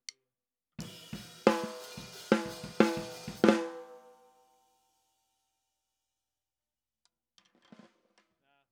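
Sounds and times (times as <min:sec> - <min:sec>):
snare drum: 0:00.8 - 0:04.1.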